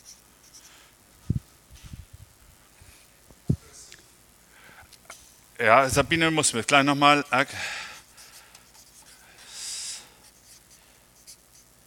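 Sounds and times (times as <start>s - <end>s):
speech: 5.6s - 7.8s
writing by hand with a pen on paper: 8.0s - 9.2s, 10.2s - 11.7s.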